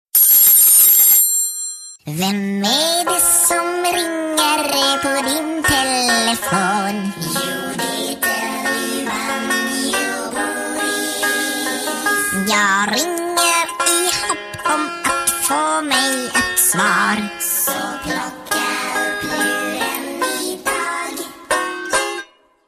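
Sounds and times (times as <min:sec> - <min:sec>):
banjo: 0:03.0 - 0:22.4.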